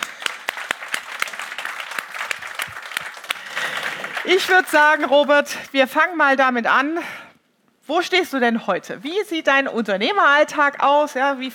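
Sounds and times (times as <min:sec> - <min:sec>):
thunderous applause: 0:00.0 - 0:05.4
speech: 0:04.3 - 0:07.2, 0:07.9 - 0:11.5.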